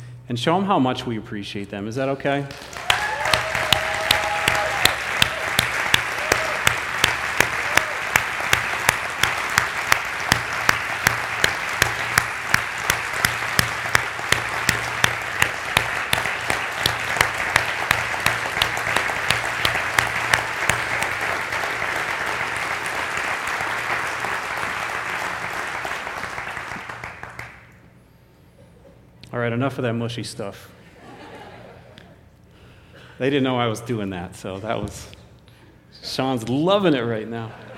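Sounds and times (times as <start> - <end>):
speech: 0.3 - 2.8, 29.8 - 30.8, 33.2 - 35.2, 36.2 - 37.7
audience applause: 2.5 - 27.7
laughter: 30.8 - 32.2, 37.3 - 37.7.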